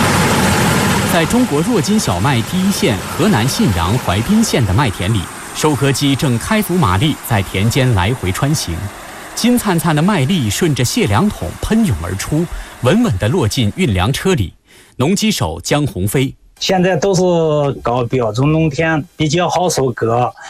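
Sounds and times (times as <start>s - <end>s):
combine harvesters droning in a wheat field in Huaibin, Henan: 0.0s - 14.4s
person talking: 1.1s - 20.4s.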